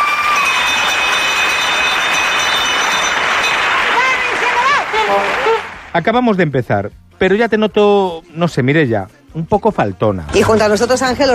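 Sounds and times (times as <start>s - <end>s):
school bell for recess: 0.1s - 4.7s
speech: 6.0s - 11.3s.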